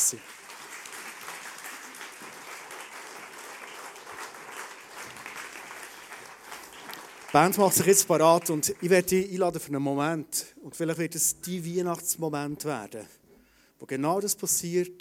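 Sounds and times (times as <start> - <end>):
audience applause: 0.0 - 8.9
speech: 0.1 - 0.4, 7.3 - 13.2, 13.8 - 15.0.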